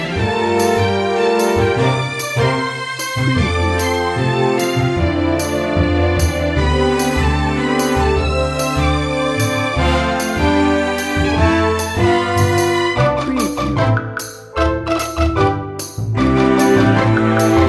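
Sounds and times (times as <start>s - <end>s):
game show music without drums: 0.0s - 17.6s.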